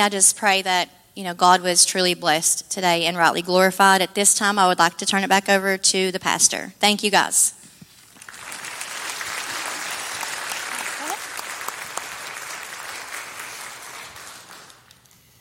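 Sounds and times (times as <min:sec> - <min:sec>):
speech: 0:00.0 - 0:07.6
audience applause: 0:08.2 - 0:15.1.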